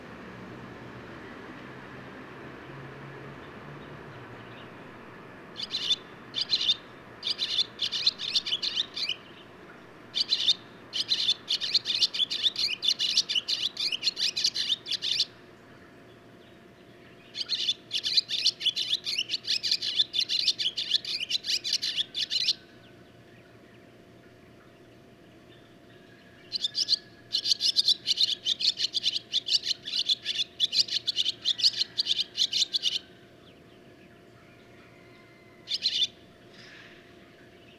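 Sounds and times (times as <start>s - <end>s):
barn swallow calling: 5.6s - 9.5s, 10.1s - 15.8s, 16.4s - 23.6s, 25.6s - 37.7s.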